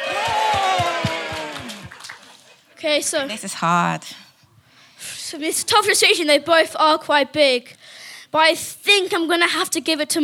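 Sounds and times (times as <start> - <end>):
audience cheering and whooping: 0.0 - 2.4
speech: 2.8 - 4.2, 5.3 - 10.2.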